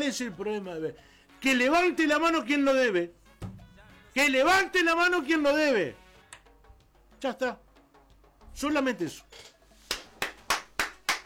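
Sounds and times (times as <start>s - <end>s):
speech: 0.0s - 3.2s, 4.2s - 6.0s, 7.2s - 7.6s, 8.6s - 9.5s
hand clapping: 9.8s - 11.2s.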